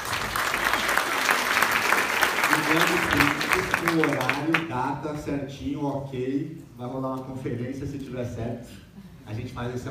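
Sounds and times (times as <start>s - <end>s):
round of applause: 0.0s - 4.6s
speech: 2.7s - 9.8s.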